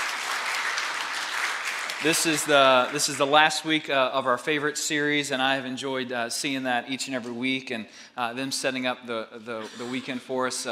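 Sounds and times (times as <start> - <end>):
church congregation applauding the children for their video: 0.0 - 3.5
speech: 2.0 - 10.6.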